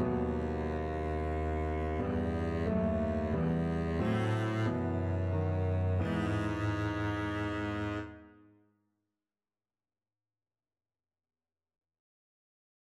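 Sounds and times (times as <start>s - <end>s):
double bass: 0.0s - 8.1s.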